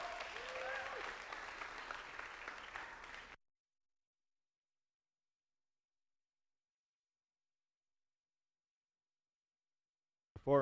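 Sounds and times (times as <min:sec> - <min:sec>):
audience applause welcoming a speaker to the stage: 0:00.0 - 0:03.4.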